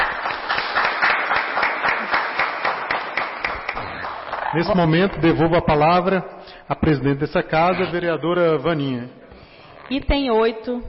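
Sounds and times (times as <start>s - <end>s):
applause: 0.0s - 5.1s
speech: 4.5s - 9.2s, 9.9s - 10.8s.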